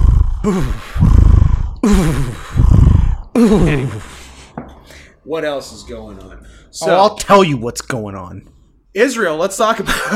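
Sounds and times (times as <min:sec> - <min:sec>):
man imitating ape huffing grunts: 0:00.0 - 0:04.4
speech: 0:00.4 - 0:01.2, 0:01.8 - 0:02.3, 0:03.4 - 0:04.1, 0:05.3 - 0:10.1.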